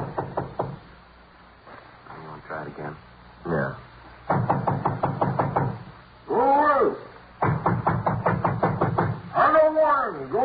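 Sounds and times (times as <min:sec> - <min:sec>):
firm knocks on a door: 0:00.0 - 0:00.9, 0:04.3 - 0:05.9, 0:07.4 - 0:09.3
faint hiss: 0:00.0 - 0:10.4.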